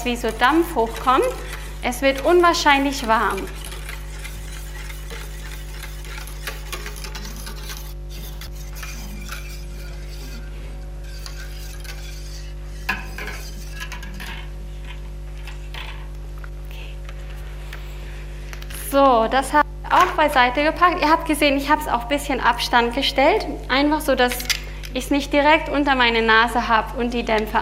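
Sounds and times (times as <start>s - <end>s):
speech: 0.0s - 3.6s, 19.0s - 27.6s
utensil stirring lye powder into liquid in a container: 0.0s - 14.5s.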